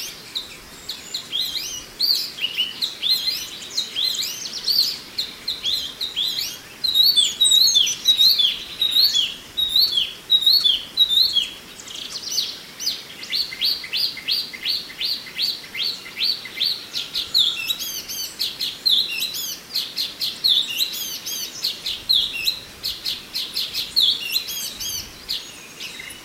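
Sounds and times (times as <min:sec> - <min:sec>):
Oriental magpie-robin song: 0:00.0 - 0:26.2.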